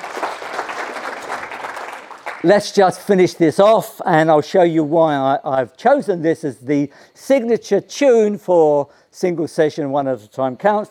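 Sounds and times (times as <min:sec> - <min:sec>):
round of applause from a crowd: 0:00.0 - 0:02.7
speech: 0:02.4 - 0:10.8.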